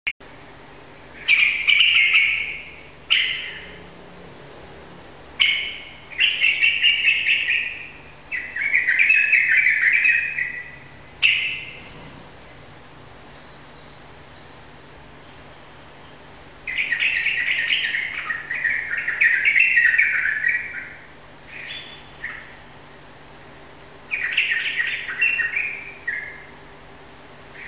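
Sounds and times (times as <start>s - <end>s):
yellow-vented bulbul singing rapid continuous chattering song indoors in a room: 1.0s - 3.9s, 5.4s - 11.9s, 15.2s - 22.7s, 24.1s - 26.6s.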